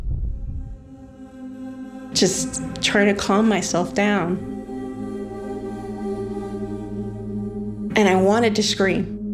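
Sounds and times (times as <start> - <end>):
loud deep heartbeat: 0.0 - 1.0
speech: 2.2 - 4.6, 8.0 - 9.2.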